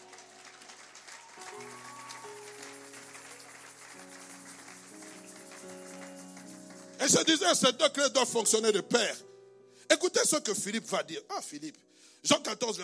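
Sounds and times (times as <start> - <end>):
audience clapping and cheering: 0.0 - 7.3
speech: 7.1 - 9.3, 10.0 - 12.8.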